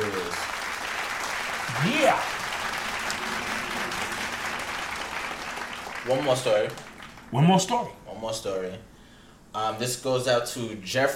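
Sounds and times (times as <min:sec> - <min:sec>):
applause: 0:00.0 - 0:07.9
speech: 0:06.1 - 0:08.9, 0:09.6 - 0:11.1.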